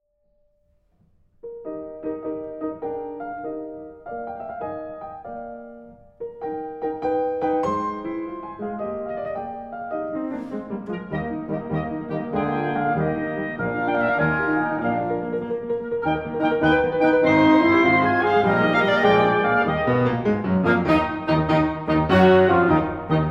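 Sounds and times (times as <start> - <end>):
chamber quintet music: 6.4 - 23.2.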